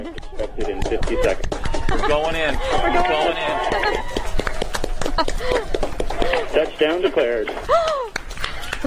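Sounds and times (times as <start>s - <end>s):
applause at NASA mission control: 0.0s - 8.8s
laughter: 0.0s - 8.8s.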